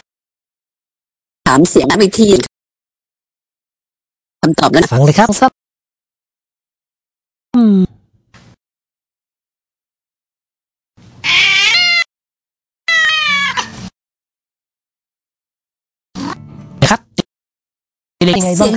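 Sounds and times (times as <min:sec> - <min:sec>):
speech: 0:01.5 - 0:02.5, 0:04.4 - 0:05.6, 0:18.2 - 0:18.7
cat meowing: 0:11.2 - 0:12.1, 0:12.9 - 0:13.8.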